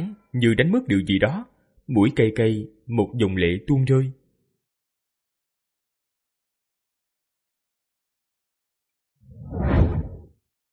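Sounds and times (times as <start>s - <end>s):
speech: 0.0s - 4.2s
whoosh of a figure flying fast through the air: 9.3s - 10.3s.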